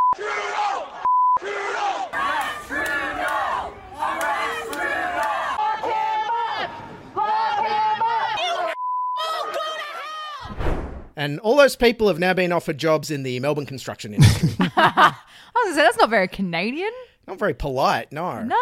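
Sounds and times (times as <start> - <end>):
anti-vaccine protesters yelling and swearing: 0.1 - 10.5
speech: 0.2 - 2.2, 11.2 - 18.6
laughter: 14.2 - 15.2.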